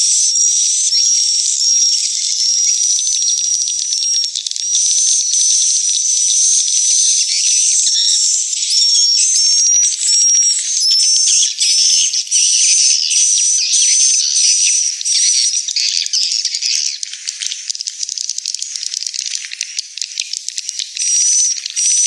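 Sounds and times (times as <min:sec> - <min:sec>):
swiftlets chattering in chorus: 0:00.0 - 0:22.0.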